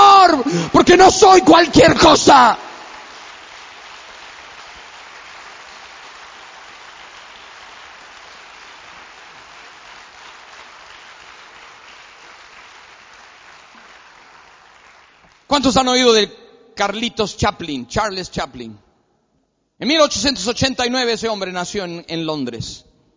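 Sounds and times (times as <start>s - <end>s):
speech: 0.6s - 2.6s, 15.5s - 18.8s, 19.8s - 22.9s
audience applause: 2.8s - 15.5s.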